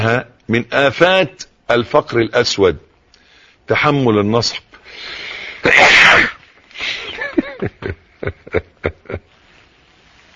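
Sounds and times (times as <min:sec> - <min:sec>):
speech: 0:00.0 - 0:02.9, 0:03.7 - 0:07.0, 0:07.6 - 0:09.3
person sneezing: 0:05.5 - 0:07.2.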